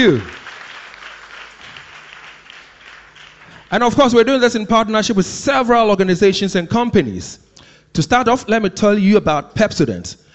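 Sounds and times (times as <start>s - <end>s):
speech: 0.0s - 0.4s, 3.7s - 10.3s
audience applause: 0.0s - 3.8s.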